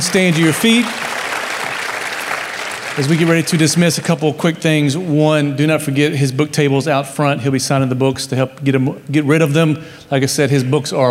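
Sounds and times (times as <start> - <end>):
speech: 0.0 - 1.1, 3.0 - 11.0
applause from a large audience: 0.0 - 4.2.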